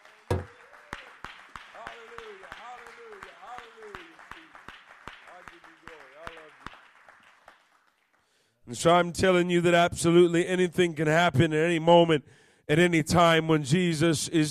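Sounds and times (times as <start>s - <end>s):
audience clapping hands: 0.0s - 8.5s
speech: 8.7s - 14.4s.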